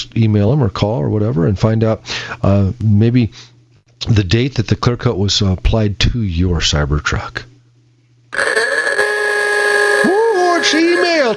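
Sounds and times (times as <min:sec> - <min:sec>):
speech: 0:00.0 - 0:07.5, 0:08.3 - 0:08.7, 0:10.0 - 0:11.3
ooga-style klaxon horn: 0:08.4 - 0:11.3.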